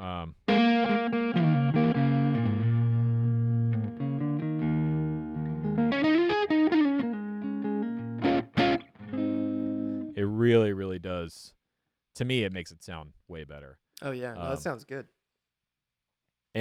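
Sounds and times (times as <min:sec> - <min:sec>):
single-note electric guitar lines with room sound: 0:00.5 - 0:10.2
speech: 0:11.2 - 0:11.6, 0:12.2 - 0:15.2.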